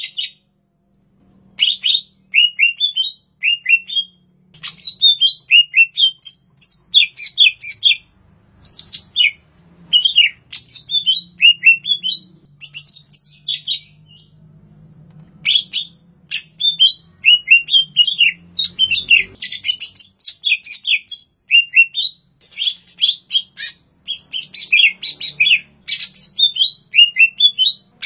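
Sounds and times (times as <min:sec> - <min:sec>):
greater green leafbird song in Banyuwangi, Indonesia: 0:01.6 - 0:28.0.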